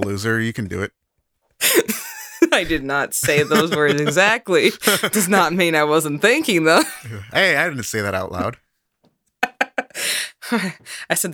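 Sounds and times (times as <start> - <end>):
speech: 0.0 - 1.0, 1.6 - 8.6, 9.9 - 11.3
laughter: 1.6 - 5.6, 6.4 - 7.3
person sneezing: 6.8 - 7.1.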